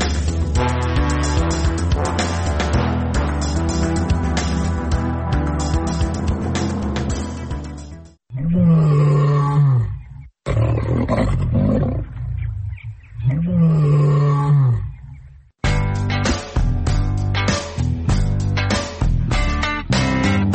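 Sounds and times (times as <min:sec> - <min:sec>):
music: 0:00.0 - 0:08.2, 0:15.6 - 0:20.5
lion cub roaring, found in the hills above Budva in Montenegro: 0:08.4 - 0:15.1.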